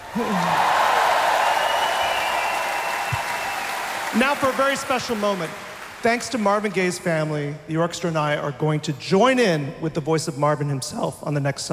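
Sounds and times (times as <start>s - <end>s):
audience applauding: 0.0s - 6.8s
speech: 0.1s - 0.8s, 4.1s - 11.7s.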